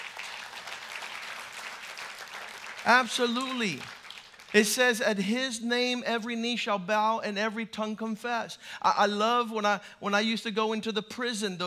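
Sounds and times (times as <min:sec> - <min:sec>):
crowd applause: 0:00.0 - 0:04.6
speech: 0:02.8 - 0:11.6.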